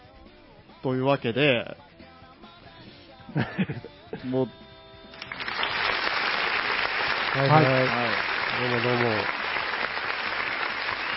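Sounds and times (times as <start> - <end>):
speech: 0.8 - 1.8, 3.4 - 4.6, 7.4 - 9.4
applause sound effect: 5.2 - 11.1.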